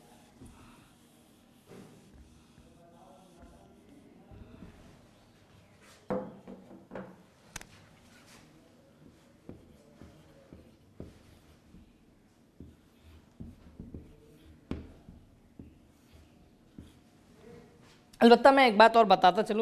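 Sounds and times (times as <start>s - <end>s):
pen scratching on paper writing the Arabic letter qaf: 0.0s - 5.7s, 9.0s - 17.2s
speech: 18.2s - 19.6s.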